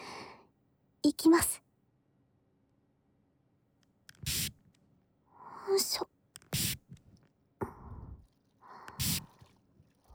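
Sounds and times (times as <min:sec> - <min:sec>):
speech: 0:01.0 - 0:01.6, 0:05.7 - 0:06.2
spray of cleaning liquid: 0:09.0 - 0:09.2.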